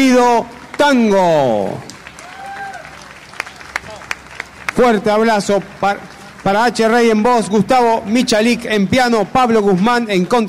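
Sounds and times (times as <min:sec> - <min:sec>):
speech: 0:00.0 - 0:01.9, 0:04.8 - 0:10.4
audience applause: 0:01.9 - 0:07.3.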